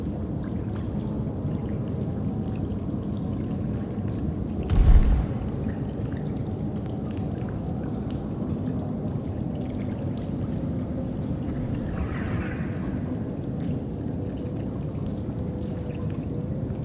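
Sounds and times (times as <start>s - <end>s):
cave ambience: 0.4s - 16.8s.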